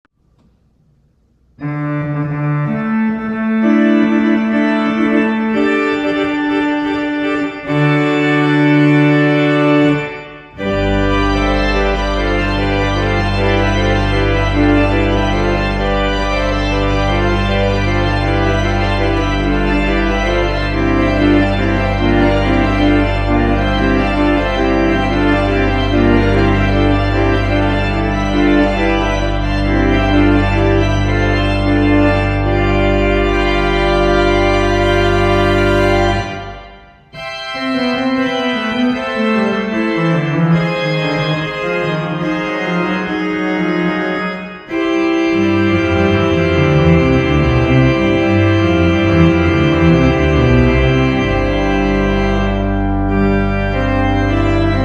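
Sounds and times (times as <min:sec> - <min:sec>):
full organ finale: 0:00.3 - 0:54.8.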